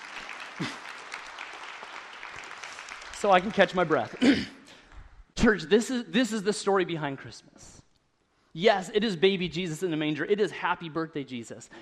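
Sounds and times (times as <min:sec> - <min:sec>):
audience clapping: 0:00.0 - 0:04.8
speech: 0:00.6 - 0:00.8, 0:03.2 - 0:04.6, 0:05.4 - 0:07.8, 0:08.5 - 0:11.8.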